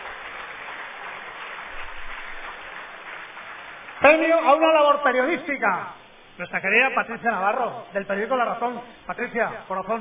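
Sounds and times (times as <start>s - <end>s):
audience applause: 0.0s - 4.7s
speech: 4.0s - 10.0s.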